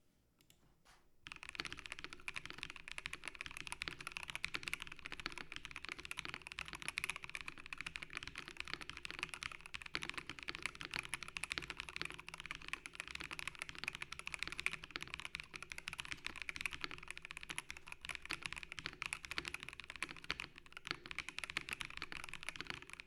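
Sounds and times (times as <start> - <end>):
Razer BlackWidow V4 75 keyboard sound test: 1.2 - 23.0.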